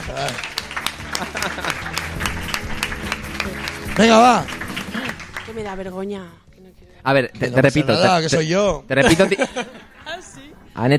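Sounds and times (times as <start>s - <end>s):
laughter: 0.0s - 5.5s, 8.9s - 10.6s
applause: 0.0s - 6.1s
speech: 0.1s - 0.6s, 1.2s - 2.3s, 4.0s - 4.6s, 5.5s - 9.9s, 10.8s - 10.9s.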